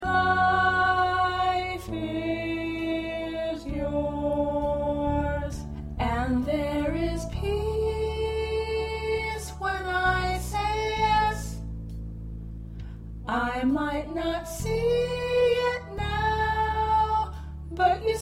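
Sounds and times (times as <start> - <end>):
soprano singing: 0.0 - 11.7, 13.2 - 18.2.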